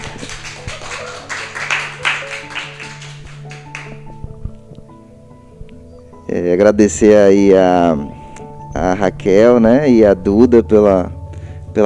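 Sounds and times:
round of applause: 0.0s - 4.0s
speech: 6.3s - 8.2s, 9.0s - 11.2s.

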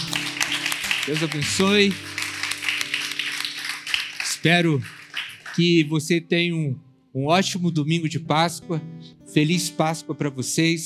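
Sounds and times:
audience applause: 0.0s - 5.9s
speech: 1.0s - 2.2s, 4.4s - 5.0s, 5.6s - 10.8s.

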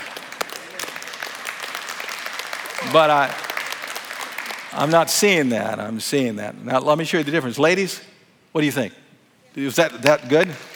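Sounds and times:
crowd clapping: 0.0s - 5.8s, 9.6s - 10.7s
speech: 2.8s - 3.4s, 4.7s - 9.0s, 9.6s - 10.7s.

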